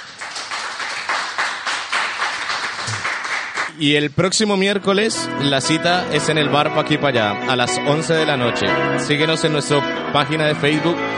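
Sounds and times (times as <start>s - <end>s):
audience applause: 0.0s - 3.7s
speech: 3.8s - 11.1s.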